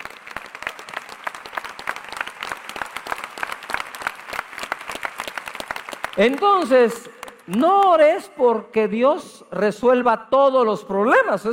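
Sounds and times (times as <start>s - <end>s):
audience applauding loudly: 0.0s - 8.2s
speech: 6.2s - 11.5s.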